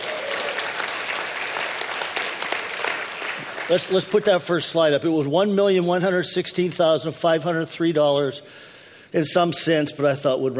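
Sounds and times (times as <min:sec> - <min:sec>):
audience applause: 0:00.0 - 0:04.6
speech: 0:03.7 - 0:10.5.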